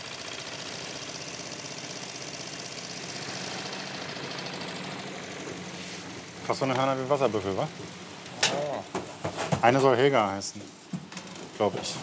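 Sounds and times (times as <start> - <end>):
old ferry engine running: 0.0 - 8.8
speech: 6.5 - 8.0, 9.6 - 10.8, 11.6 - 12.0.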